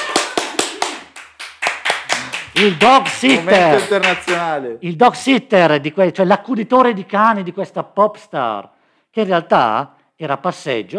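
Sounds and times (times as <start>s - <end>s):
applause, hands clapping: 0.0s - 4.6s
speech: 2.6s - 10.9s.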